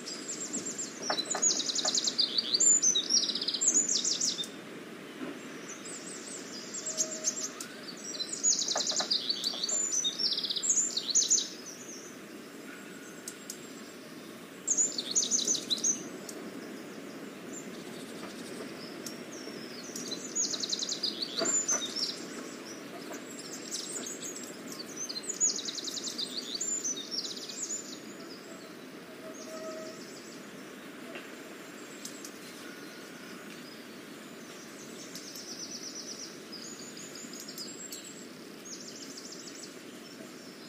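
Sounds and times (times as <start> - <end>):
spring birdsong in Portugal: 0.0 - 40.6.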